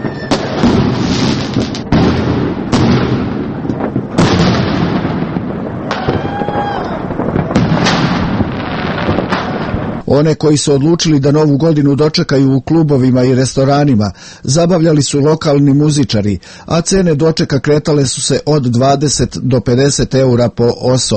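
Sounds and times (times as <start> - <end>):
New Year's celebratory gunfire in Kragujevac: 0.0 - 10.0
New Year's midnight fireworks in Kragujevac: 0.0 - 10.2
speech: 10.1 - 21.1.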